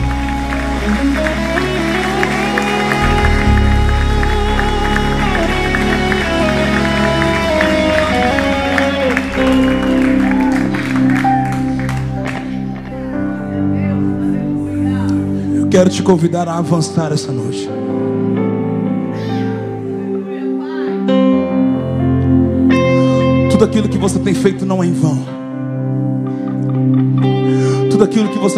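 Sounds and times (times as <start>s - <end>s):
audience applause: 0.0s - 13.4s
sustained music: 0.0s - 28.5s
voices cheering: 0.1s - 12.7s
speech: 15.8s - 18.4s, 23.7s - 25.4s, 28.0s - 28.5s.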